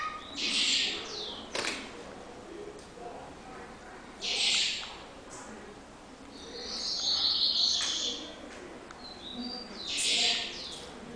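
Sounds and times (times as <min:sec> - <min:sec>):
Double-collared seedeater singing a fast twittering high phrase: 0:00.2 - 0:01.5, 0:04.2 - 0:04.9, 0:06.3 - 0:08.3, 0:09.0 - 0:10.9.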